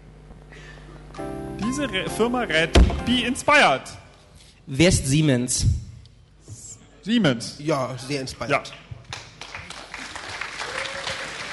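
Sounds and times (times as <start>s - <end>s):
speech: 1.7s - 4.0s, 4.7s - 5.8s, 7.1s - 8.8s
audience clapping in a full hall during a quiz game: 9.0s - 11.5s.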